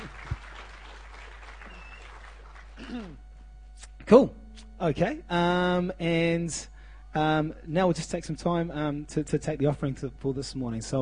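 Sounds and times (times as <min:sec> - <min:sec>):
audience clapping: 0:00.0 - 0:03.2
speech: 0:04.1 - 0:11.0.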